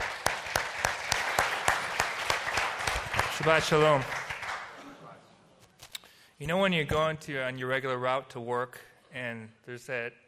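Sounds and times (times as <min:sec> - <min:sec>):
audience applause welcoming a speaker: 0:00.0 - 0:04.8
speech: 0:03.4 - 0:04.2, 0:06.4 - 0:10.2.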